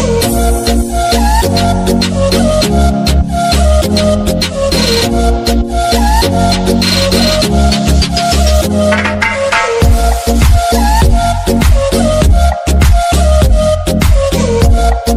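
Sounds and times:
music ringtone: 0:00.1 - 0:15.1.

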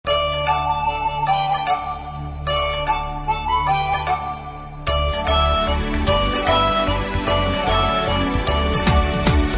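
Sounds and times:
romantic ringtone: 0:00.1 - 0:09.4.

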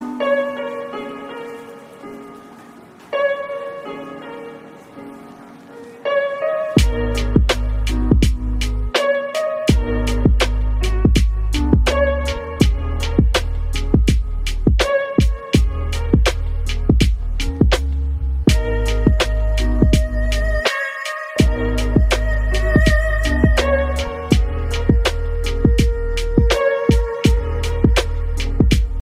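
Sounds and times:
calm wake up beat ringtone: 0:06.1 - 0:29.0.

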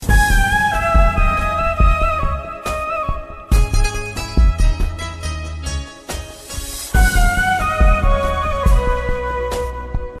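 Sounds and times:
sad bansuri flute ringtone: 0:00.0 - 0:05.7, 0:06.9 - 0:10.1.

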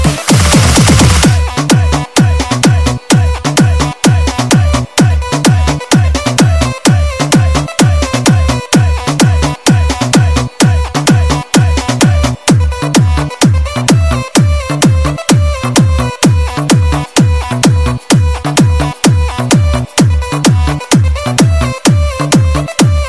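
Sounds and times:
English music: 0:00.0 - 0:23.0.

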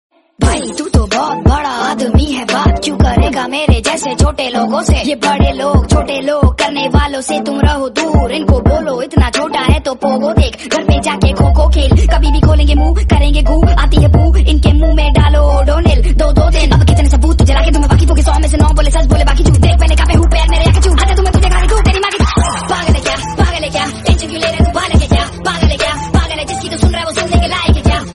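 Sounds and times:
Bollywood rap song ringtone: 0:00.4 - 0:28.1.

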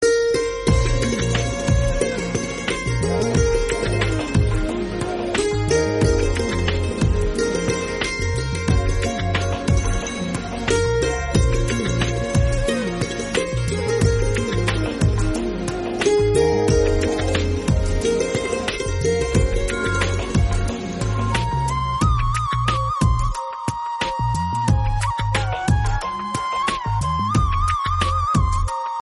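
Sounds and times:
santoor instrumental music ringtone: 0:00.0 - 0:29.0.

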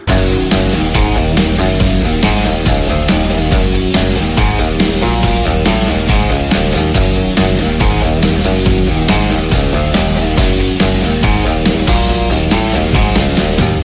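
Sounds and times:
Telugu guitar music ringtone: 0:00.0 - 0:13.8.

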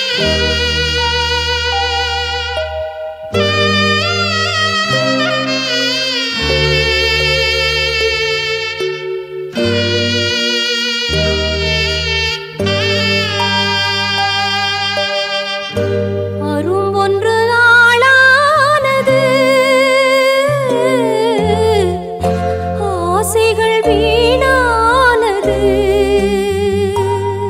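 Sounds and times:
Tamil song ringtone: 0:00.2 - 0:27.4.

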